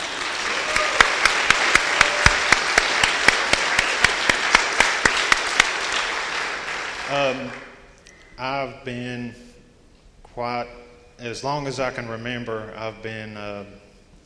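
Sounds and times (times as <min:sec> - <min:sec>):
audience applause: 0:00.0 - 0:07.8
speech: 0:08.4 - 0:09.5, 0:10.4 - 0:13.9.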